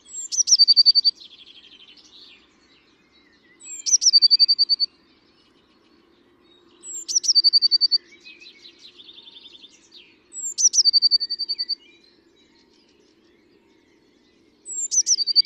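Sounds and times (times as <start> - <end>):
Eurasian blue tit song: 0.0 - 15.4.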